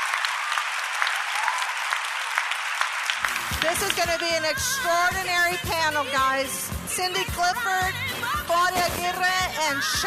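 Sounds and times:
audience applause for panel: 0:00.0 - 0:04.4
speech: 0:03.6 - 0:10.0.

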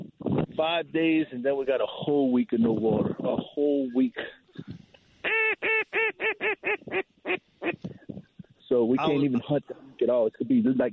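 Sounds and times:
speech: 0:00.6 - 0:04.4, 0:08.7 - 0:10.9
geese honking: 0:05.2 - 0:07.8.

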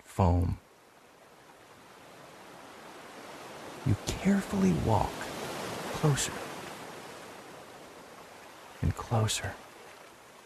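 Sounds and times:
speech: 0:00.2 - 0:00.6, 0:03.8 - 0:05.2, 0:06.0 - 0:06.4, 0:08.8 - 0:09.6
waterfall rushing into a pool: 0:03.0 - 0:08.2.

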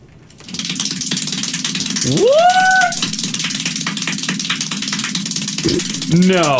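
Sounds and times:
extremely rapid hand clapping: 0:00.4 - 0:06.5
speech: 0:02.1 - 0:02.8, 0:05.6 - 0:06.5.

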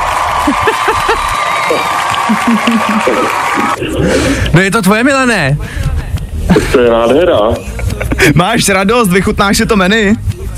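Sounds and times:
people whooping and cheering: 0:00.0 - 0:03.8
crowd applauding: 0:00.0 - 0:03.9
laughter: 0:00.3 - 0:04.0, 0:06.5 - 0:08.6
speech: 0:00.5 - 0:00.7, 0:02.5 - 0:03.6, 0:04.5 - 0:05.8, 0:06.5 - 0:10.3.

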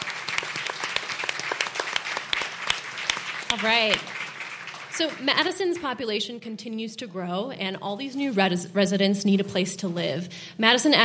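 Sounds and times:
audience applause: 0:00.0 - 0:05.6
speech: 0:03.5 - 0:04.1, 0:05.0 - 0:11.0.

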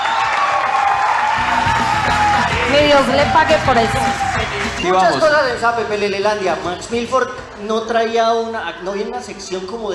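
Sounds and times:
live audience applause: 0:00.0 - 0:04.9
speech: 0:02.7 - 0:09.9.

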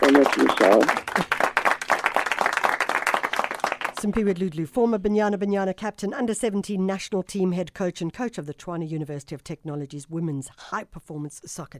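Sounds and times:
speech: 0:00.0 - 0:01.3, 0:04.0 - 0:11.7
applause: 0:00.0 - 0:04.2.

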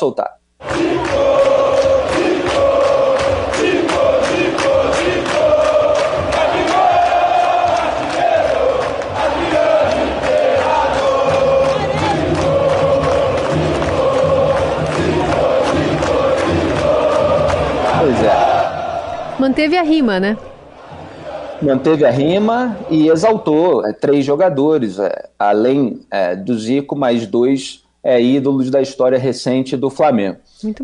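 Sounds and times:
speech: 0:00.0 - 0:00.4, 0:19.4 - 0:20.5, 0:21.6 - 0:30.8
football fans chanting a rhythmic song in stadium: 0:00.6 - 0:23.4.

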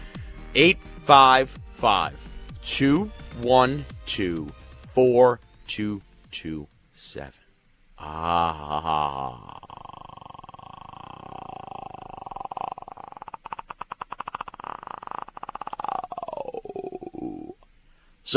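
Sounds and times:
speech: 0:00.5 - 0:07.4, 0:08.0 - 0:09.7
man making a throat-clearing growl imitating a roar: 0:08.0 - 0:17.6.

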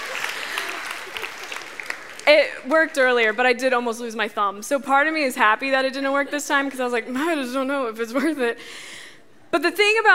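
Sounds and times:
audience clapping: 0:00.0 - 0:03.1
speech: 0:02.3 - 0:10.1.

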